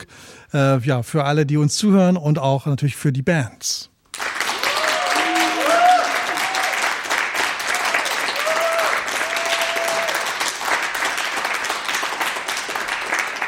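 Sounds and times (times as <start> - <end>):
speech: 0.5 - 3.9
studio audience applause: 4.1 - 13.4.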